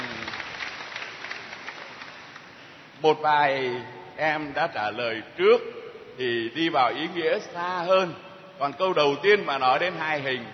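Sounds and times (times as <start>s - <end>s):
applause from a group during a church catechism lesson: 0.0s - 2.9s
speech: 3.0s - 10.5s.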